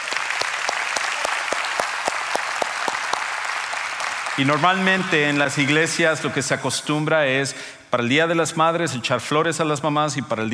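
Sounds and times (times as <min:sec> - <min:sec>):
strong applause: 0:00.0 - 0:06.5
speech: 0:04.4 - 0:10.5.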